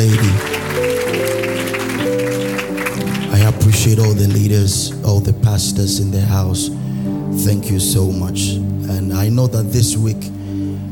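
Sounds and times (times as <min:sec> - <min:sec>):
crowd clapping hands in honor of the First Lady: 0:00.0 - 0:05.5
sustained musical chords: 0:00.0 - 0:10.8
speech: 0:03.8 - 0:10.4.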